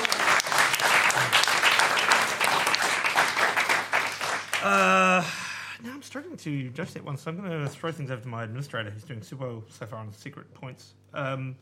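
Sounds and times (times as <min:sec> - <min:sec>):
audience applause: 0:00.0 - 0:05.3
speech: 0:06.1 - 0:11.6.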